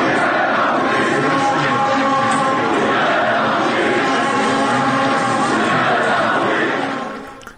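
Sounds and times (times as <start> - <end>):
stadium football crowd cheering: 0.0 - 7.5.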